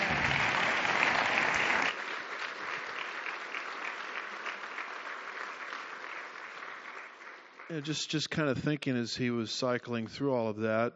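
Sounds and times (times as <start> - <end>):
audience applause: 0.0 - 7.9
speech: 7.7 - 10.9.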